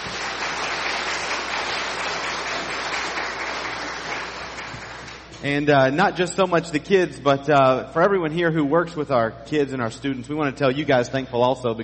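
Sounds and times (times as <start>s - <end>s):
round of applause: 0.0s - 5.3s
speech: 5.4s - 11.8s.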